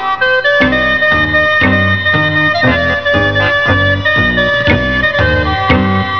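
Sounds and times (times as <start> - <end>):
keyboard: 0.0 - 6.1.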